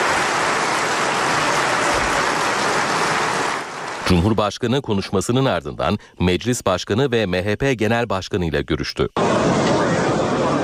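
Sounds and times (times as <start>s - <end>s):
group applauding: 0.0s - 4.3s
speech: 4.1s - 9.6s.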